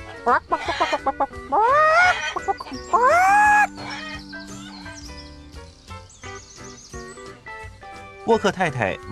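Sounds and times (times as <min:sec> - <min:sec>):
hens clucking: 0:00.0 - 0:05.1
speech: 0:00.2 - 0:04.1, 0:08.3 - 0:09.1.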